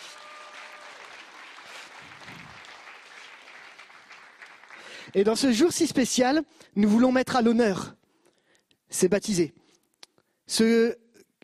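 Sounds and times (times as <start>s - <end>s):
audience applauding: 0.0s - 5.2s
speech: 5.1s - 8.0s, 8.9s - 9.6s, 10.5s - 11.0s.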